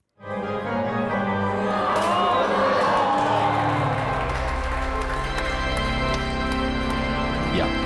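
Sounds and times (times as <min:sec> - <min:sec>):
stadium organ chords: 0:00.2 - 0:01.8, 0:03.8 - 0:07.8
large stadium crowd roaring and cheering a goal: 0:01.3 - 0:05.6.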